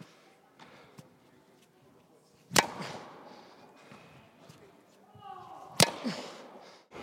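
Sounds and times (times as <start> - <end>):
racket hitting ball in tennis practice at the David Lloyd Tennis Centre: 2.5 - 4.6, 5.7 - 6.6.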